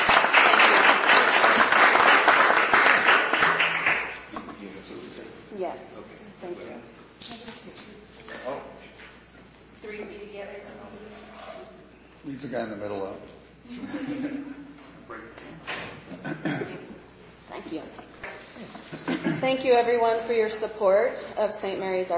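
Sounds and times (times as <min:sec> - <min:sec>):
applause: 0:00.0 - 0:04.3
laughter: 0:13.7 - 0:14.9, 0:18.6 - 0:19.5
speech: 0:19.6 - 0:22.1.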